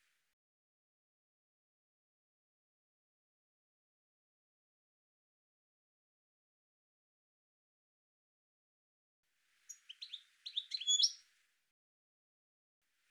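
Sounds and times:
bird twittering chirps: 9.7s - 11.2s.

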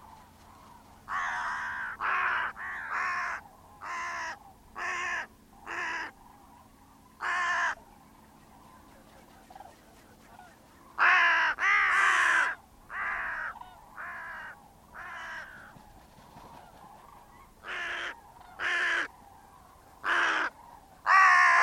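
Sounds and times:
bird cawing: 0.0s - 21.6s.

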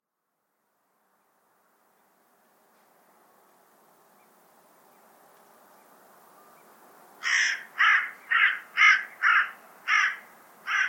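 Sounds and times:
harsh rasping bird call: 7.2s - 10.8s.

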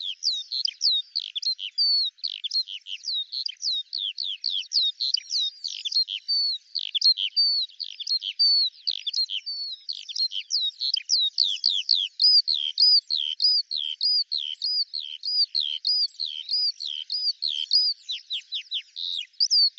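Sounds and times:
Eurasian skylark singing: 0.0s - 19.7s.

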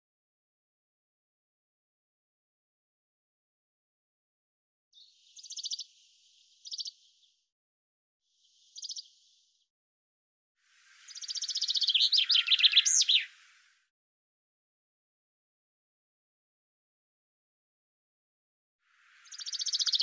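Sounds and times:
bird singing a high fast trill of chirping notes: 11.5s - 13.3s.

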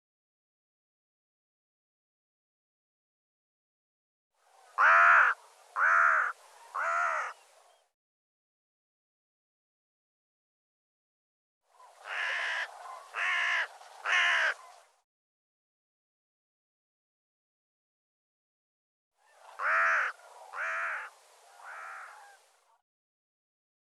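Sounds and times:
bird calling with hoarse caws: 4.8s - 7.4s, 12.0s - 14.7s, 19.2s - 22.5s.

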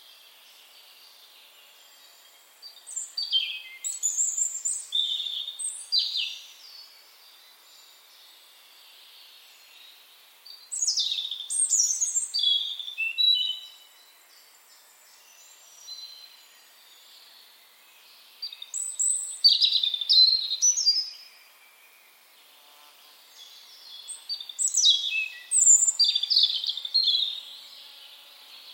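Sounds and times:
European robin song: 0.0s - 28.7s.

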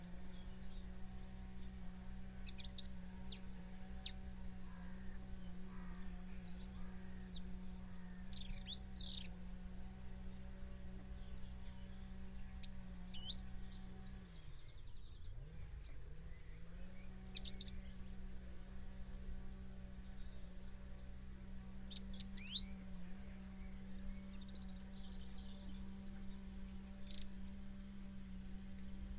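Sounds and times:
bird chirping: 0.0s - 29.1s.

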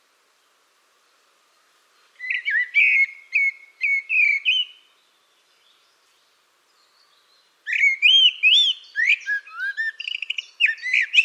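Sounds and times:
bird calling: 2.0s - 4.9s, 7.6s - 11.2s.

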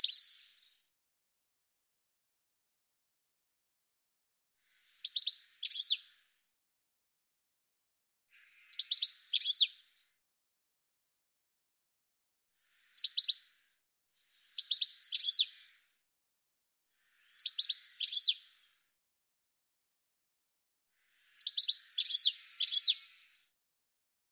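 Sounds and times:
birds chirping and twittering: 0.0s - 0.9s, 4.7s - 6.2s, 8.3s - 10.0s, 12.6s - 16.0s, 17.0s - 18.8s, 21.0s - 23.6s.

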